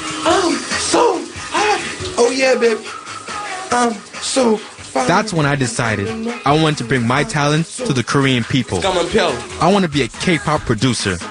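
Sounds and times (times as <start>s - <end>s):
shower running water: 0.0s - 8.2s
person singing: 0.1s - 11.3s
speech: 2.3s - 3.0s, 3.7s - 11.3s.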